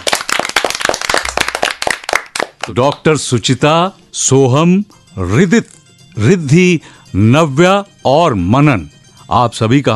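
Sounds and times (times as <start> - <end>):
studio audience clapping: 0.0 - 3.1
speech: 2.6 - 9.9.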